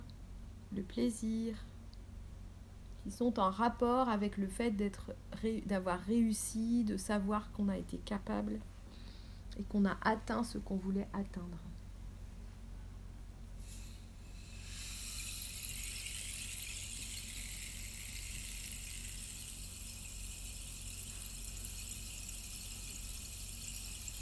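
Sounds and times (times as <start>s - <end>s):
speech: 0.7s - 1.7s, 3.0s - 8.7s, 9.5s - 11.8s
rain stick being turned: 13.6s - 24.1s.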